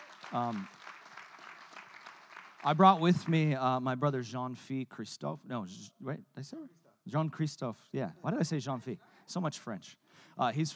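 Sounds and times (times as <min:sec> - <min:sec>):
audience clapping hands: 0:00.0 - 0:03.6
speech: 0:00.3 - 0:00.8, 0:02.6 - 0:10.7.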